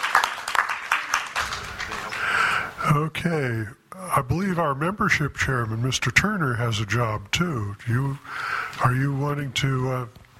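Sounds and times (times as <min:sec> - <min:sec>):
audience applauding: 0:00.0 - 0:02.8
speech: 0:03.0 - 0:10.2.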